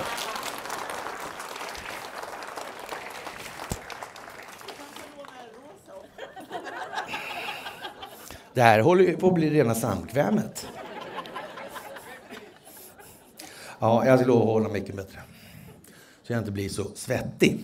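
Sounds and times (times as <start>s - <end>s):
audience clapping: 0.0s - 6.9s, 11.2s - 12.7s
people chuckling: 5.9s - 8.4s, 10.6s - 13.4s
speech: 8.6s - 10.7s, 13.8s - 15.3s, 16.3s - 17.6s.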